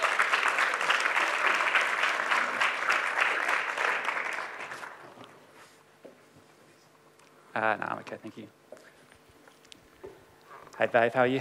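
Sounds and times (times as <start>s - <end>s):
audience applause welcoming a guest to the stage: 0.0s - 5.2s
speech: 7.6s - 8.6s, 10.8s - 11.3s.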